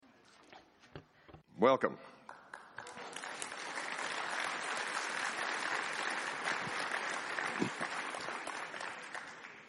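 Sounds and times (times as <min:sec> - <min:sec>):
speech: 0:01.6 - 0:02.1
audience applause: 0:02.4 - 0:09.6.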